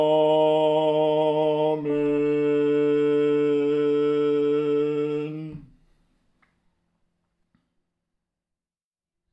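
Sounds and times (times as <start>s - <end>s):
contralto voices singing: 0.0s - 5.8s.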